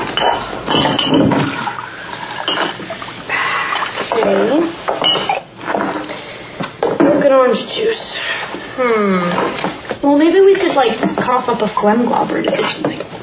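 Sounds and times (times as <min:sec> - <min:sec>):
dishes and cutlery clattering: 0:00.0 - 0:01.7, 0:02.4 - 0:03.0, 0:03.7 - 0:06.1, 0:12.4 - 0:13.1
speech: 0:00.2 - 0:01.7, 0:02.5 - 0:03.1, 0:04.1 - 0:05.4, 0:07.2 - 0:13.0.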